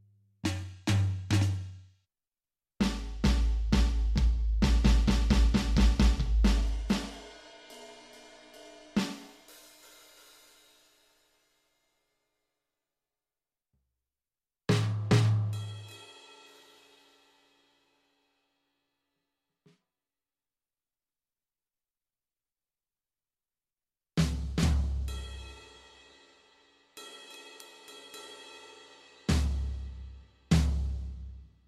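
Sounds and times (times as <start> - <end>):
drum: 0.4 - 1.7, 2.8 - 7.3, 14.7 - 15.9, 24.2 - 25.6, 29.3 - 31.5.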